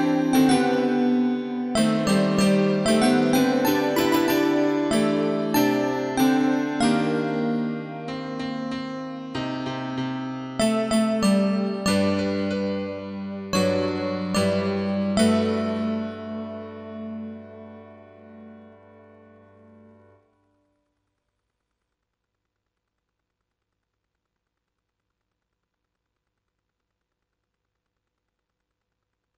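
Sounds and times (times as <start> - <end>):
jingle: 0.0 - 9.3, 10.6 - 20.0.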